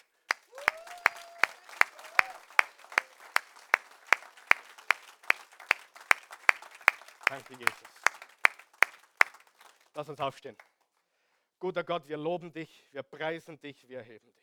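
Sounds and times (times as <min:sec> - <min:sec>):
audience applause: 0:00.0 - 0:10.0
person whooping: 0:00.5 - 0:03.2
speech: 0:07.3 - 0:08.1, 0:10.0 - 0:10.7, 0:11.6 - 0:14.4.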